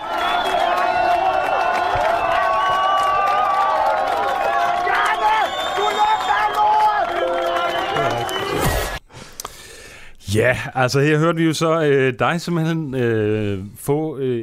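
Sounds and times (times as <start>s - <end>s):
rioting crowd yelling and shouting at Christiania: 0.0s - 9.0s
speech: 10.3s - 14.4s.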